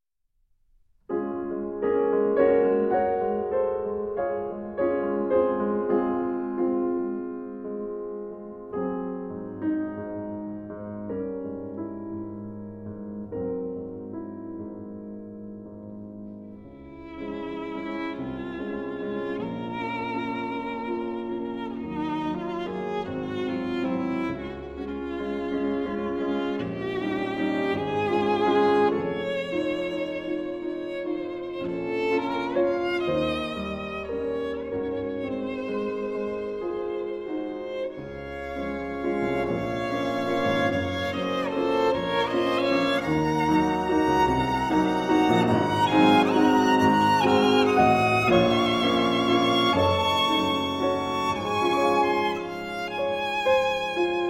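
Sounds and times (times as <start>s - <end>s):
piano: 0.4s - 54.2s
violin: 1.1s - 14.1s, 16.3s - 54.2s.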